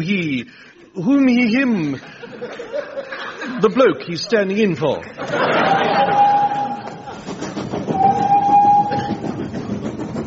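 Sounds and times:
speech: 0.0s - 6.2s
laughter: 2.0s - 3.8s, 5.1s - 7.4s
person imitating a train with their voice: 5.7s - 10.2s.

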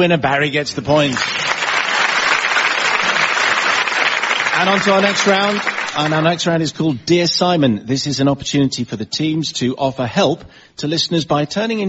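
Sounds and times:
speech: 0.0s - 1.5s, 4.6s - 11.8s
audience applause on a comedy quiz show: 0.9s - 6.4s.

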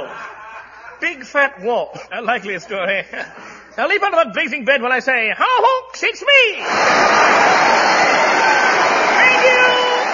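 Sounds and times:
laughter: 0.0s - 1.3s, 2.2s - 3.7s
speech: 1.0s - 8.0s
recorded applause: 6.6s - 10.1s.

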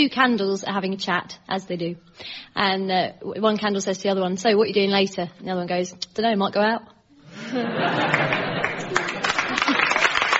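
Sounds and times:
speech: 0.0s - 8.5s
laughter: 7.3s - 10.3s
half-hearted clapping: 8.1s - 10.3s.

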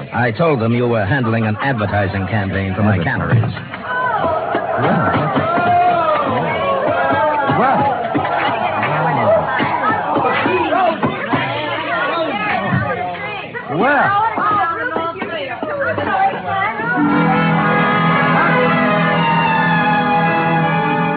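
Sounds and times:
group of voices chattering: 0.0s - 21.1s
speech: 0.1s - 3.8s, 4.8s - 5.2s
thumps of stamping feet: 3.3s - 11.5s
sustained musical tones: 16.9s - 21.1s.

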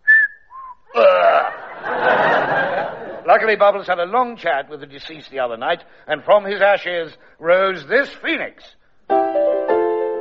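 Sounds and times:
person whistling two notes: 0.0s - 0.9s
bursts of laughter: 1.4s - 3.3s
speech: 3.4s - 9.5s.

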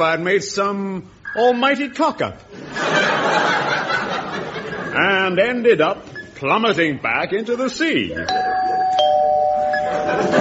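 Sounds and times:
speech: 0.0s - 3.5s, 5.0s - 8.7s
laughter: 2.5s - 5.1s, 9.8s - 10.3s
electronic doorbell chime: 8.3s - 10.3s.

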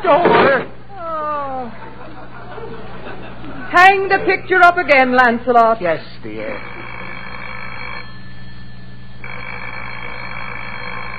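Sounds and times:
speech: 0.0s - 0.6s, 3.8s - 6.8s
laughter: 1.4s - 4.5s
old-fashioned telephone bell ringing: 6.5s - 11.1s.

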